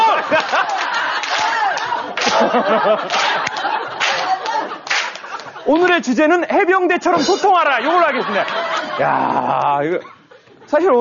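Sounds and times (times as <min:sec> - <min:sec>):
marine corps style group clapping: 0:00.0 - 0:05.9
laughter: 0:00.0 - 0:06.2, 0:07.0 - 0:11.0
speech: 0:02.5 - 0:03.4, 0:05.7 - 0:11.0.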